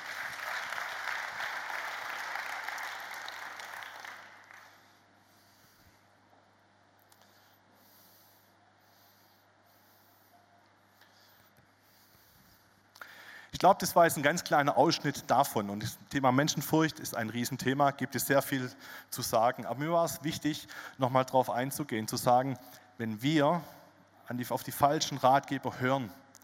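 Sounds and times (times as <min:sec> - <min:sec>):
applause: 0:00.0 - 0:05.0
speech: 0:13.6 - 0:26.2.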